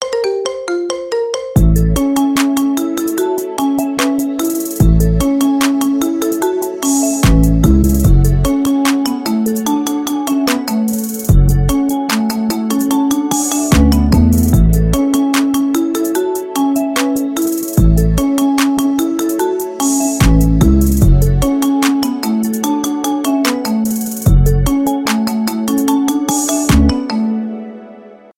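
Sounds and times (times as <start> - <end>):
marimba remix: 0.0 - 27.6.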